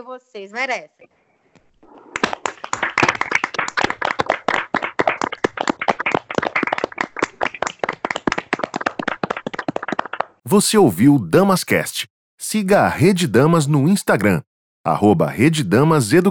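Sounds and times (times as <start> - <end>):
speech: 0.0 - 1.2, 10.5 - 16.2
round of applause: 2.2 - 10.3.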